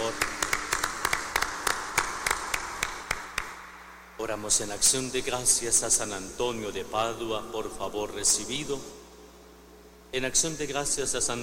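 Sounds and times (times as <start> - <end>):
applause: 0.0 - 3.6
speech: 4.2 - 9.0, 10.1 - 11.4.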